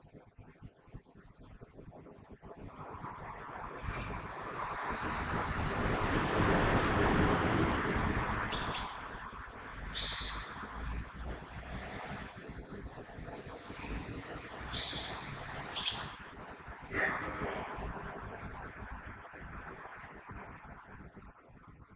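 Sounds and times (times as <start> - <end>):
low rumble: 1.4 - 21.9
common blackbird song: 8.5 - 9.2, 9.8 - 10.6, 12.3 - 13.7, 14.5 - 16.3.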